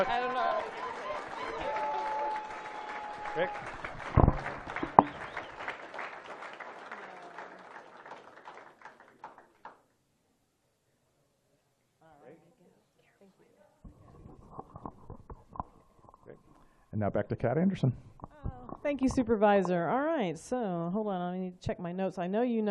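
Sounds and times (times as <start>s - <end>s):
speech: 0.0s - 0.3s, 3.4s - 3.8s, 17.0s - 18.2s, 18.9s - 22.6s
applause: 0.0s - 9.8s.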